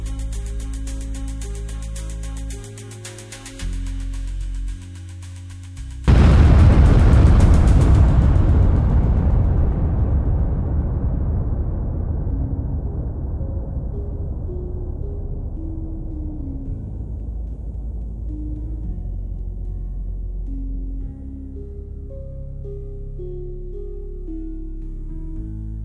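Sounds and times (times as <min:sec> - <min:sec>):
cannon: 0:06.1 - 0:15.5.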